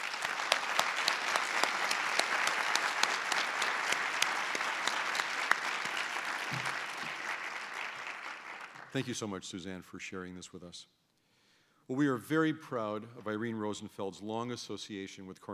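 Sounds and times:
audience applauding to welcome a speaker: 0.0 - 9.2
speech: 9.0 - 11.0, 11.9 - 15.5.

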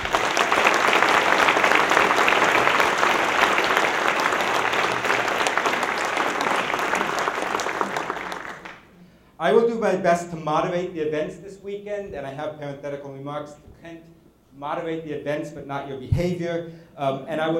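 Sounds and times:
audience applause: 0.0 - 9.0
speech: 9.5 - 17.5.

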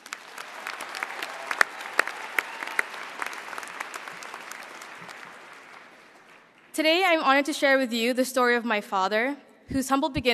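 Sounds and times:
large graduation audience applause: 0.0 - 6.7
speech: 6.8 - 10.3.

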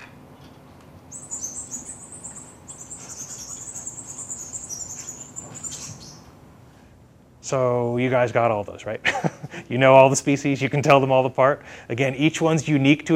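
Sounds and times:
faint hiss: 0.0 - 13.1
migrating birds of many species giving flight calls: 1.1 - 6.3
speech: 7.5 - 13.1.

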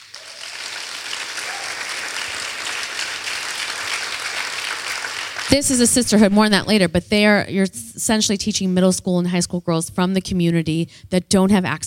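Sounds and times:
crowd clapping: 0.0 - 6.3
speech: 5.5 - 11.8.

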